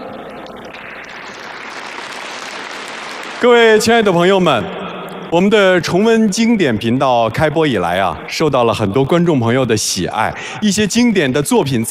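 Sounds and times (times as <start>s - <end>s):
audience applause: 0.5s - 4.2s
speech: 3.4s - 11.8s.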